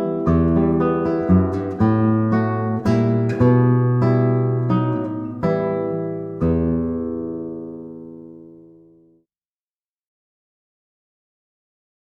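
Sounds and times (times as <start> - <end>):
Spanish waltz on guitar: 0.0 - 9.2.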